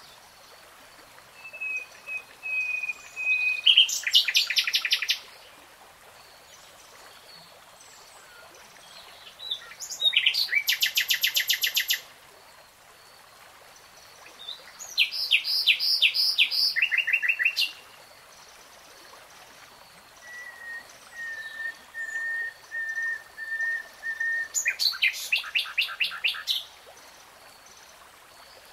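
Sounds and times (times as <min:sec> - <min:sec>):
nightingale song: 0:01.3 - 0:05.3, 0:08.0 - 0:12.1, 0:14.4 - 0:17.9, 0:20.0 - 0:27.8.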